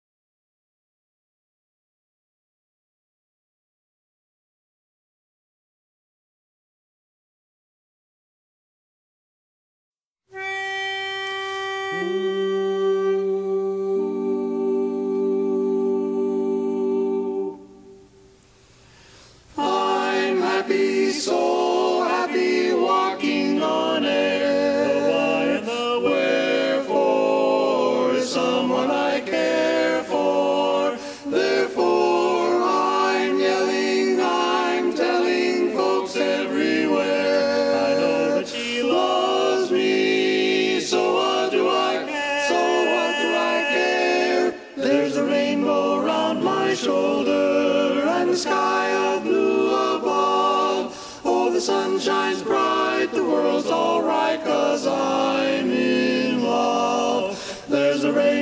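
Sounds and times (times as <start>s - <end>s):
tenor singing: 10.3s - 18.0s, 19.5s - 58.4s.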